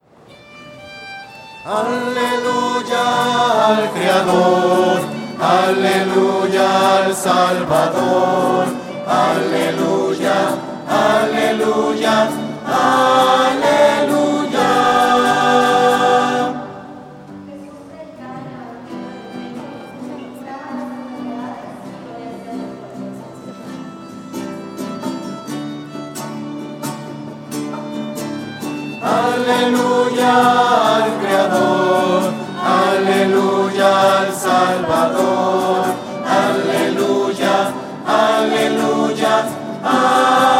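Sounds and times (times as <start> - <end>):
voices singing hallelujah to the creator: 1.6 - 17.3, 28.8 - 40.5.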